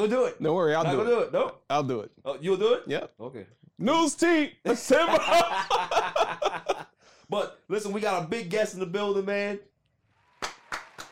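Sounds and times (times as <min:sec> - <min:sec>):
speech: 0:00.0 - 0:06.6, 0:07.3 - 0:09.7
laughter: 0:04.7 - 0:07.0
sharp loud hand claps: 0:10.2 - 0:11.0.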